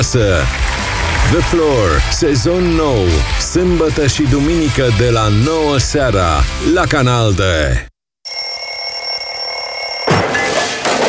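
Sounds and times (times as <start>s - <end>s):
speech: 0.0s - 0.6s, 1.2s - 7.9s
alarm clock ringing: 8.3s - 10.2s.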